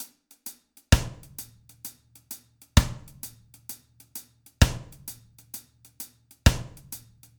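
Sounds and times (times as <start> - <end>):
music beat: 0.9 - 1.5, 2.8 - 3.4, 4.6 - 5.2, 6.5 - 7.1.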